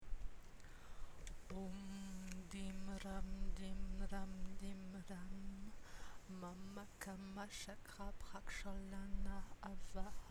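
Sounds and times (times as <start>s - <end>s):
person chanting a mantra: 1.4s - 10.2s.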